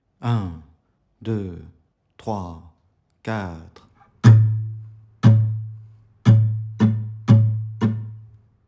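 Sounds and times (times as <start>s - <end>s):
musical exercise: 4.0s - 8.5s.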